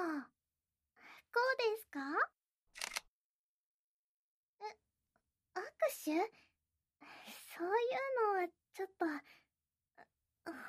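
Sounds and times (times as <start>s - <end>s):
speech: 1.3s - 2.4s, 5.8s - 9.4s, 10.0s - 10.6s
camera shutter firing as someone poses for a photo: 2.8s - 3.1s.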